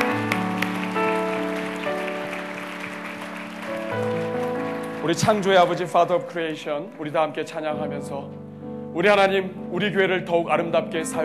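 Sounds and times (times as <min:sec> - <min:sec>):
audience clapping: 0:00.0 - 0:07.6
speech: 0:05.1 - 0:08.4, 0:09.0 - 0:11.2.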